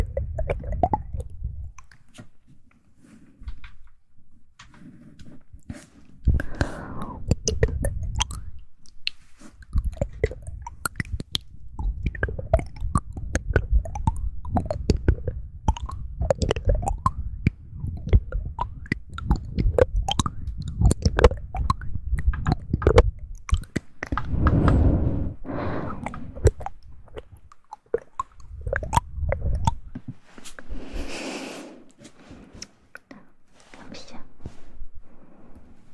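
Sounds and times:
wet mouth clicks and smacks: 0.0s - 2.3s, 6.3s - 24.9s, 25.9s - 30.6s
breathy swells: 6.4s - 7.3s, 24.2s - 26.6s.

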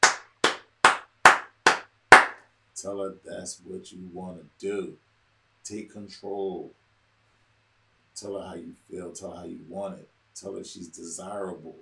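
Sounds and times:
clapping sound effect: 0.0s - 2.4s
speech: 2.8s - 5.1s, 5.7s - 6.8s, 8.2s - 11.8s.

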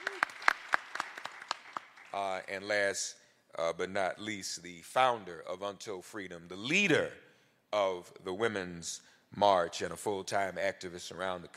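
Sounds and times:
audience applause: 0.0s - 2.4s
speech: 2.1s - 11.5s.

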